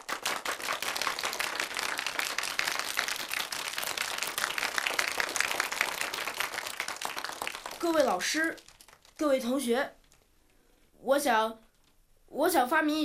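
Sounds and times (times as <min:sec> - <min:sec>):
classroom applause: 0:00.0 - 0:10.2
speech: 0:07.8 - 0:10.0, 0:11.0 - 0:11.6, 0:12.3 - 0:13.0.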